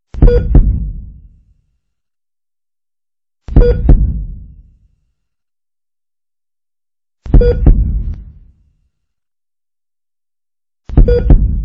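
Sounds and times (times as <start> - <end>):
heartbeat: 0.2 - 1.3, 3.5 - 4.7, 7.3 - 8.4, 10.9 - 11.6.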